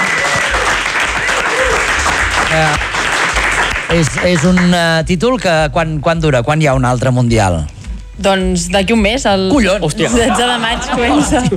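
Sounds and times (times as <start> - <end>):
audience applause: 0.0 - 4.8
speech: 2.6 - 2.9, 3.9 - 11.5
laughter: 10.0 - 11.5.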